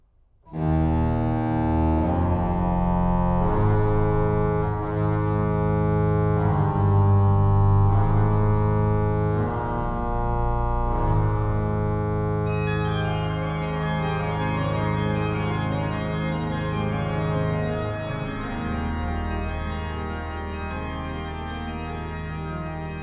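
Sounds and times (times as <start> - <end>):
organ pastorale: 0.5 - 23.0.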